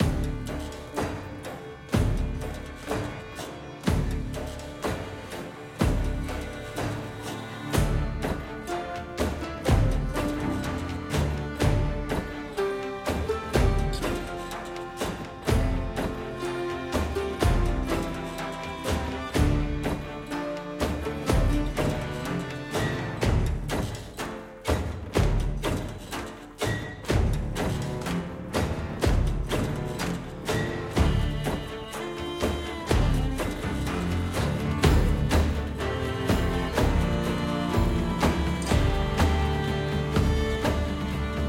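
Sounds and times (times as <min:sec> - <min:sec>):
music: 0:00.0 - 0:41.4.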